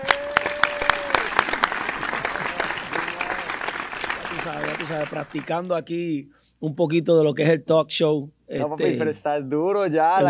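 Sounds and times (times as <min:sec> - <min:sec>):
audience applause: 0:00.0 - 0:05.6
speech: 0:04.5 - 0:10.2.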